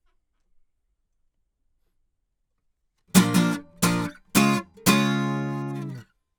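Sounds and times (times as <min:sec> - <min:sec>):
acoustic guitar comping: 0:03.2 - 0:06.0.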